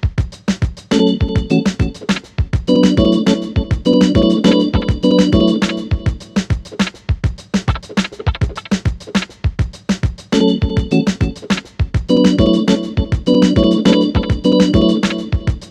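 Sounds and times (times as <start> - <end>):
hip hop beat: 0.8 - 15.6
organ with delay effect: 0.9 - 6.6, 10.3 - 15.6.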